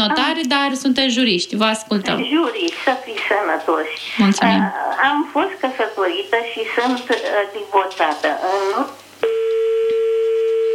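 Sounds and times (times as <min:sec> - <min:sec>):
speech: 0:00.0 - 0:09.0
steady telephone line tone after a phone-in call drops: 0:09.2 - 0:10.7.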